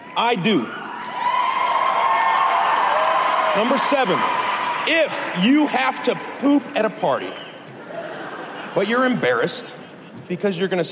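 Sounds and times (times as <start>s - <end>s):
speech: 0.2s - 1.2s, 3.6s - 7.5s, 8.7s - 10.9s
crowd shouting and whooping: 0.5s - 6.4s
crowd applauding: 0.9s - 8.2s
laughter: 7.7s - 10.3s.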